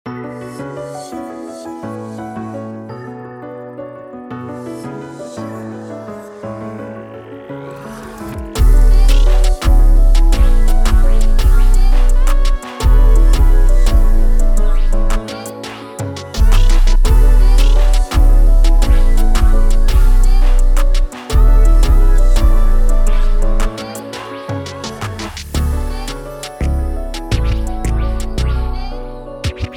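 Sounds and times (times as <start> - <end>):
keys type beat: 8.6 - 28.5, 29.4 - 29.7.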